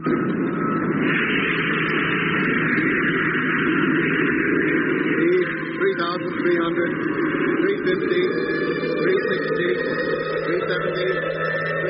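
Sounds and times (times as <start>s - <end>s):
spaceship rocket motor firing, radio drama effect: 0.0s - 11.8s.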